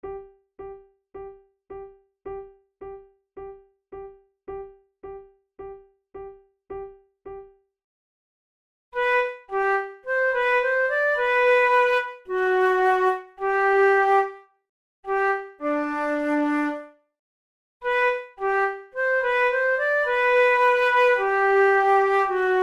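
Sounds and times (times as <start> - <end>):
flute method exercise: 9.0 - 14.5, 15.1 - 17.0, 17.8 - 22.6.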